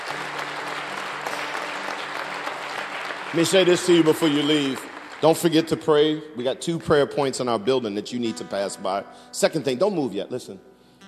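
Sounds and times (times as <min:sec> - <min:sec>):
audience clapping hands: 0:00.0 - 0:06.1
speech: 0:03.3 - 0:10.7.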